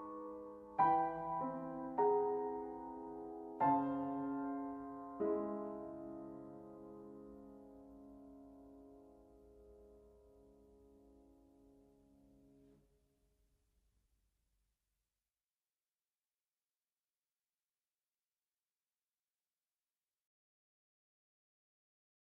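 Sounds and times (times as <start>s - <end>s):
piano prelude: 0.0s - 12.8s.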